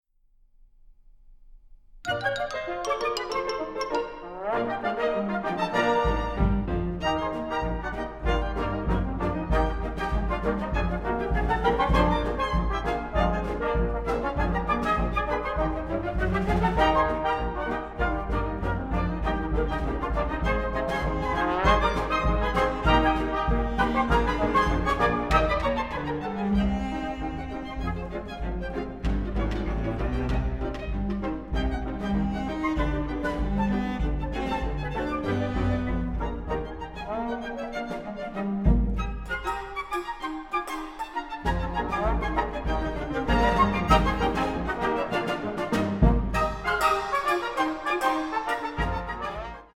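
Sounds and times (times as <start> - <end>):
ragtime orchestra playing a rag: 2.0 - 49.7.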